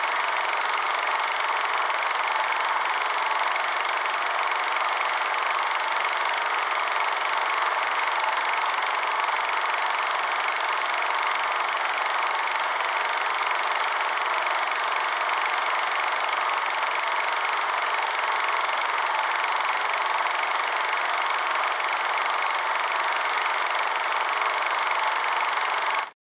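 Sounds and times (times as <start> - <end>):
movie projector running: 0.0 - 26.2.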